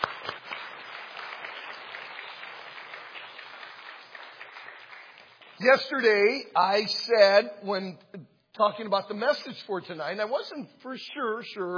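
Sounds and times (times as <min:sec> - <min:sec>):
audience applause: 0:00.0 - 0:06.0
speech: 0:05.6 - 0:11.7.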